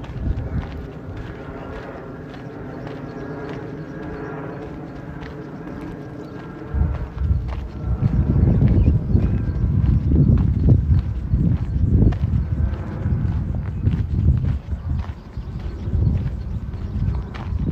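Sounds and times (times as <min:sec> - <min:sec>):
low engine hum in Modiin, Israel: 0:00.0 - 0:17.7.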